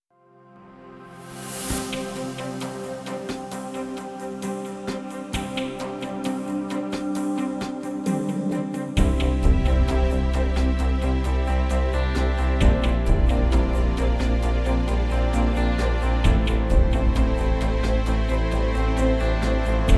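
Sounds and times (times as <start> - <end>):
instrumental music: 0.3 - 19.9.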